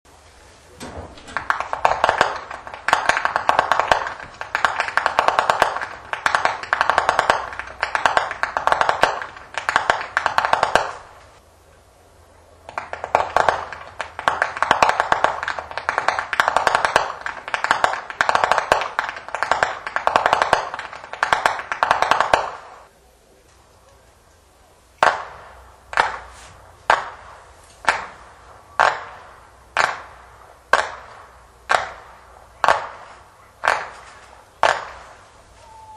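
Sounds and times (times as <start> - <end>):
whip cracking in Flachgau: 0.8 - 11.4, 12.7 - 22.9, 25.0 - 35.3.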